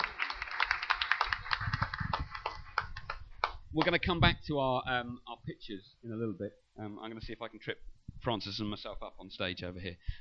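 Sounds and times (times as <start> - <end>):
audience applause: 0.0 - 3.6
speech: 3.8 - 10.1.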